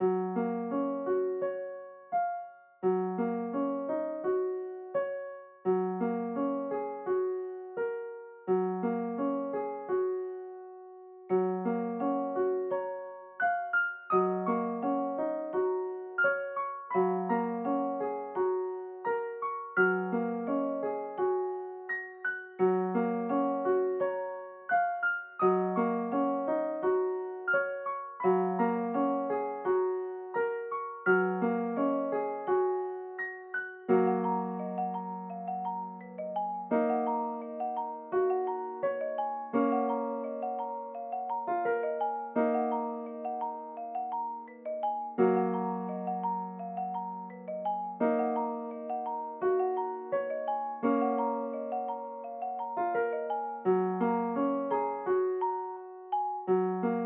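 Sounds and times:
menu piano music: 0.0 - 57.0.

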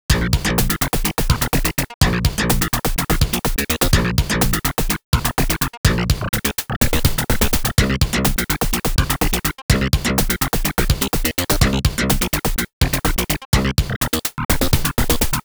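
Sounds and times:
acid track music: 0.1 - 15.4.

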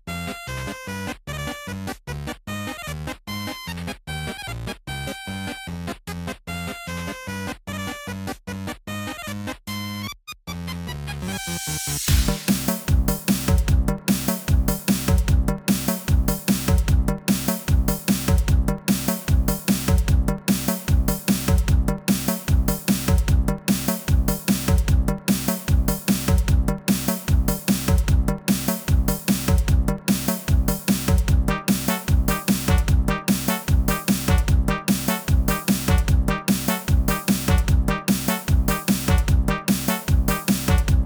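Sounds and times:
instrumental music: 12.1 - 41.0.

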